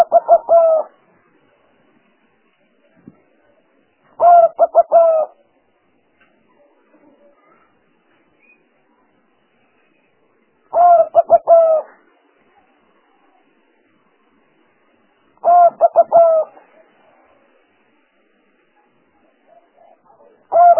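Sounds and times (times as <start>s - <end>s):
spotted dove cooing: 0.0s - 1.0s, 4.2s - 5.4s, 10.7s - 12.0s, 15.4s - 17.6s, 19.5s - 20.7s.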